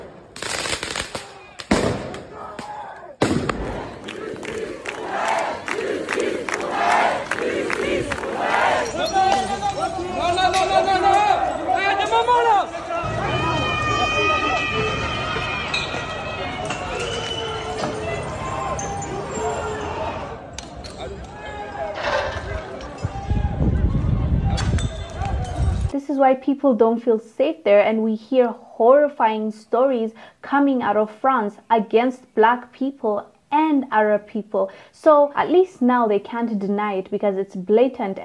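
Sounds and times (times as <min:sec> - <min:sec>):
firecracker-like bangs at a protest in the streets of France: 0:00.4 - 0:02.3, 0:03.2 - 0:03.9
protest crowd shouting and chanting in the streets of France: 0:02.2 - 0:25.9
speech: 0:26.4 - 0:38.2.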